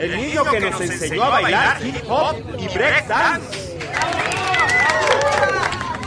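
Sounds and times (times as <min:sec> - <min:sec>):
speech: 0:00.0 - 0:03.6
audience applause: 0:03.7 - 0:06.0
crowd cheering and shouting: 0:03.8 - 0:06.0.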